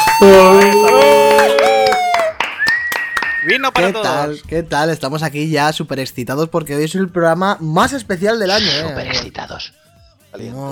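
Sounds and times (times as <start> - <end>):
sustained whooping voice cheering: 0.0 - 2.3
sharp claps: 0.0 - 4.0
speech: 0.2 - 0.6, 3.6 - 10.7.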